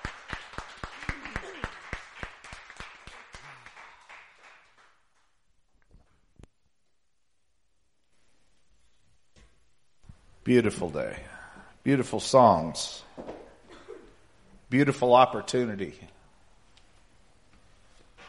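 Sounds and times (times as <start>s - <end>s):
audience clapping and cheering: 0.0s - 5.4s
speech: 10.5s - 13.2s, 14.7s - 16.2s.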